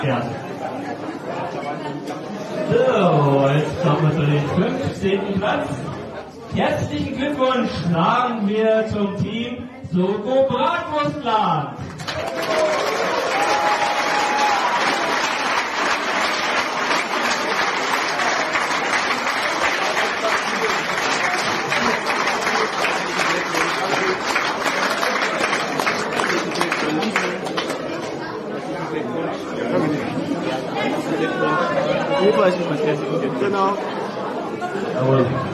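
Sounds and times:
speech: 0.0s - 13.0s, 32.5s - 34.0s, 35.0s - 35.5s
murmur of voices: 0.0s - 35.5s
crowd applauding: 11.9s - 28.2s.

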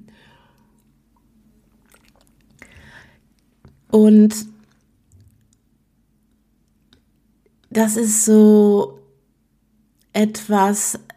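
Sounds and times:
person taking a quick sip of water: 0.6s - 3.8s
speech: 3.9s - 4.5s, 7.8s - 9.0s, 10.2s - 11.1s.

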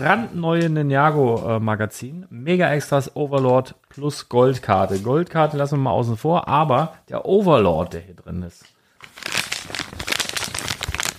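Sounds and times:
speech: 0.0s - 9.4s
paper bag crinkling: 9.0s - 11.1s.

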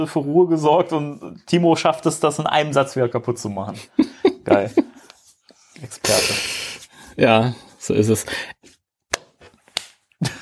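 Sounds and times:
speech: 0.0s - 4.9s, 5.8s - 8.5s
laughter: 3.8s - 5.1s
hand clap: 9.1s - 10.0s.

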